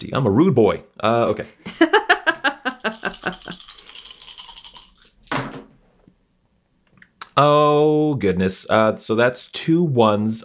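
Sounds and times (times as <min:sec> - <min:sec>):
speech: 0:00.0 - 0:02.0, 0:07.4 - 0:10.4
laughter: 0:01.6 - 0:03.6
dice being rolled: 0:02.8 - 0:05.5.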